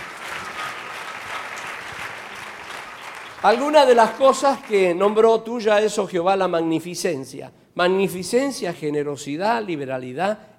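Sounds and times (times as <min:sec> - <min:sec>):
audience applauding: 0:00.0 - 0:05.2
speech: 0:03.4 - 0:10.5.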